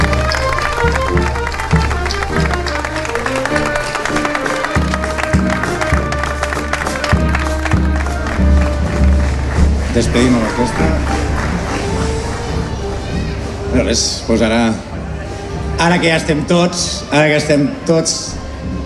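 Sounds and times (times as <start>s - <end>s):
loud applause: 0.0s - 14.0s
speech: 10.0s - 11.2s, 13.8s - 14.9s, 15.8s - 18.4s.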